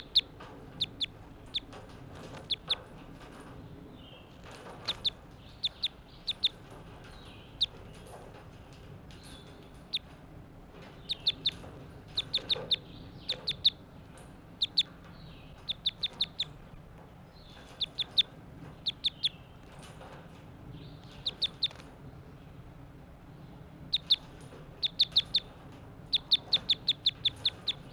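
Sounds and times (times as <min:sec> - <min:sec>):
bird calling: 0:00.0 - 0:02.9, 0:04.0 - 0:08.0, 0:10.9 - 0:19.7, 0:20.8 - 0:22.0, 0:23.8 - 0:27.9.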